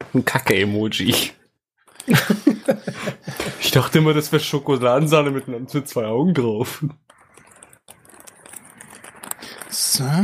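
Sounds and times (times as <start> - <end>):
speech: 0.1 - 1.4, 2.0 - 7.1, 10.0 - 10.2
laughter: 2.0 - 3.9
paper receipt crinkling as it is folded: 7.1 - 10.2.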